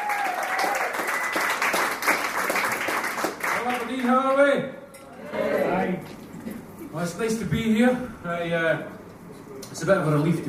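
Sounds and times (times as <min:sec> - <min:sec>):
audience clapping to welcome a performer onto the stage: 0:00.0 - 0:04.4
speech: 0:07.0 - 0:08.9, 0:09.8 - 0:10.4.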